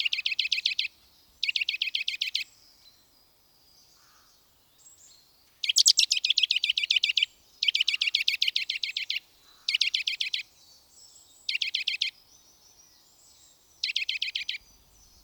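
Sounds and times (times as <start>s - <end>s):
Eurasian nuthatch calling with bright piping notes: 0.0s - 2.5s, 5.6s - 10.5s, 11.5s - 12.2s, 13.8s - 15.2s.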